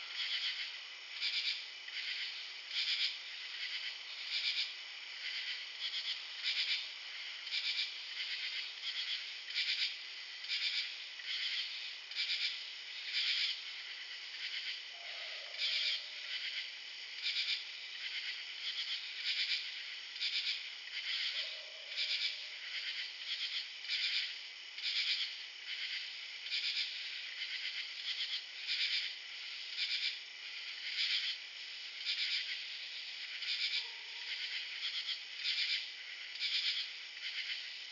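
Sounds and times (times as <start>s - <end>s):
forest night ambience: 0.0s - 37.9s.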